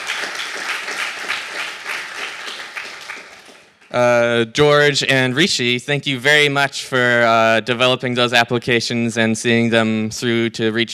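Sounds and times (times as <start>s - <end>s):
audience applause: 0.0s - 3.8s
speech: 3.9s - 10.9s.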